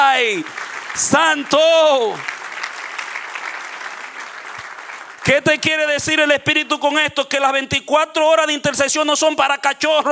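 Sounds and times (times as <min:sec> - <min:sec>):
church service congregation clapping: 0:00.0 - 0:06.7
speech: 0:00.2 - 0:02.4, 0:05.2 - 0:10.0.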